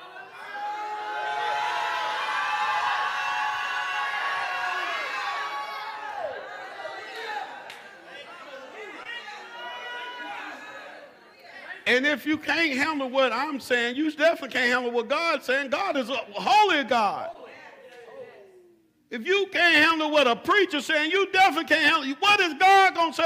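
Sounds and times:
audience shouting and praising: 0:00.0 - 0:11.3
speech: 0:11.9 - 0:17.4, 0:19.2 - 0:23.2.

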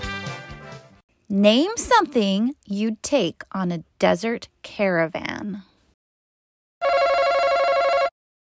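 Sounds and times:
speech: 0:01.4 - 0:05.7
game show buzzer: 0:06.8 - 0:08.1.

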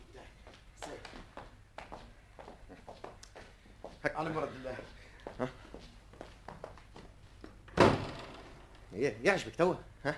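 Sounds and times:
shuffling steps: 0:00.0 - 0:07.7
speech: 0:04.2 - 0:05.6, 0:09.0 - 0:10.1
door thudding open as someone barges in: 0:07.7 - 0:08.6.

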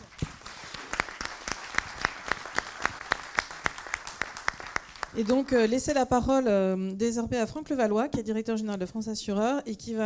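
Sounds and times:
audience applauding panel speakers: 0:00.0 - 0:05.7
sharp rhythmic claps: 0:00.0 - 0:05.9
speech: 0:05.2 - 0:10.0.

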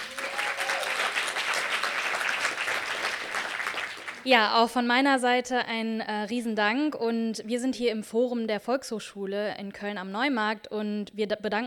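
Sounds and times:
audience clapping: 0:00.0 - 0:04.3
speech: 0:04.2 - 0:11.6.

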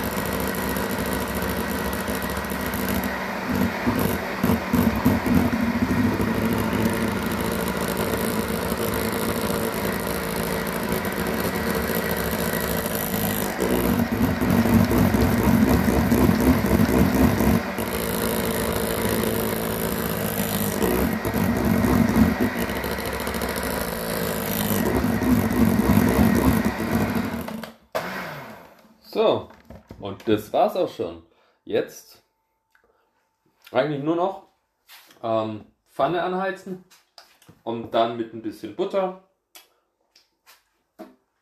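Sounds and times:
electric hand mixer whirring: 0:00.0 - 0:28.8
speech: 0:30.3 - 0:32.1, 0:33.7 - 0:34.5, 0:35.2 - 0:37.0, 0:37.6 - 0:39.3.

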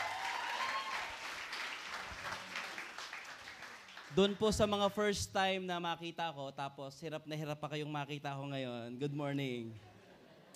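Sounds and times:
room full of people applauding: 0:00.0 - 0:04.4
speech: 0:04.1 - 0:09.9.

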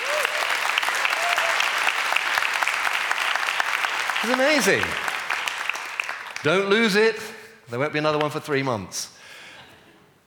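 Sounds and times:
crowd clapping: 0:00.0 - 0:07.0
speech: 0:04.2 - 0:05.1, 0:06.4 - 0:09.2.

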